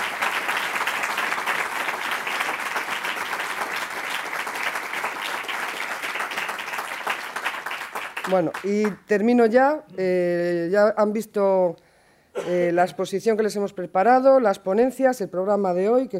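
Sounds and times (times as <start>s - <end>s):
audience applause: 0.0s - 8.7s
speech: 8.3s - 11.8s, 12.4s - 16.1s.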